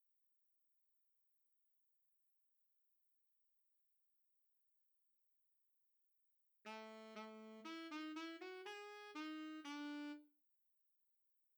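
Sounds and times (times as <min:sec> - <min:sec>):
alto saxophone classical piece: 0:06.7 - 0:10.3.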